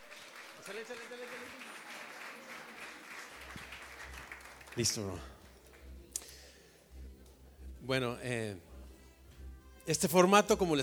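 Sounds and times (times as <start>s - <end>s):
applause: 0.0s - 5.8s
speech: 0.7s - 1.8s, 4.8s - 5.4s, 7.8s - 8.7s, 9.9s - 10.8s.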